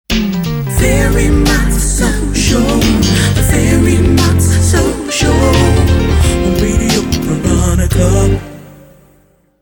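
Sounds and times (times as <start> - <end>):
soul show jingle: 0.2 - 9.0.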